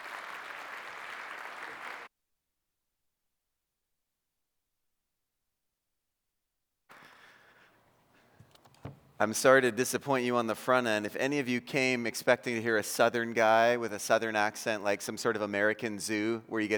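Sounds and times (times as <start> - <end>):
audience applause: 0.0 - 2.1
speech: 9.2 - 16.7.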